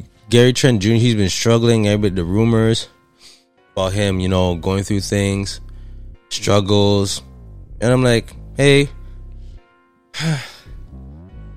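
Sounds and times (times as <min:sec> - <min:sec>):
speech: 0:00.0 - 0:03.0, 0:03.8 - 0:05.7, 0:06.3 - 0:09.0, 0:10.2 - 0:10.5
single loud sneeze: 0:10.2 - 0:10.7.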